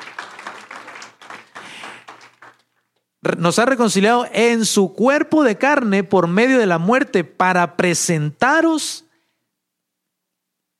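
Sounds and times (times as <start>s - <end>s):
crowd applause: 0.0s - 2.7s
speech: 3.2s - 9.0s.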